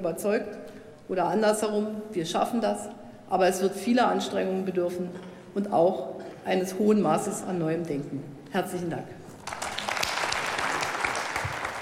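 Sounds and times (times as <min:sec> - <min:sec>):
speech: 0:00.0 - 0:09.2
studio audience applause on a German television program: 0:09.4 - 0:11.8.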